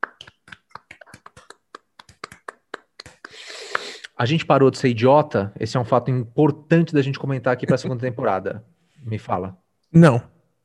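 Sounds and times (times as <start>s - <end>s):
hand claps: 0.0s - 3.9s
speech: 4.2s - 10.3s.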